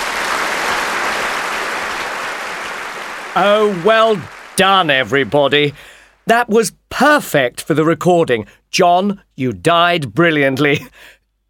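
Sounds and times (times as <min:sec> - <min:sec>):
audience applause: 0:00.0 - 0:06.1
speech: 0:03.4 - 0:11.2.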